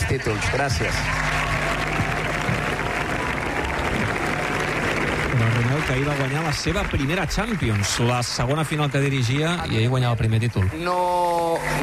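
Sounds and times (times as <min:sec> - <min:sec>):
collective applause: 0:00.0 - 0:11.8
speech: 0:00.2 - 0:02.0, 0:05.4 - 0:11.8.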